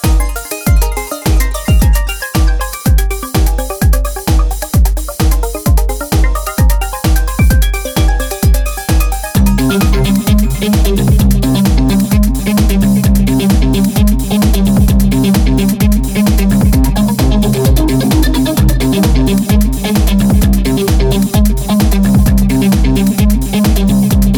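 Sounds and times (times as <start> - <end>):
tempo sweeps: 0.0 - 24.3.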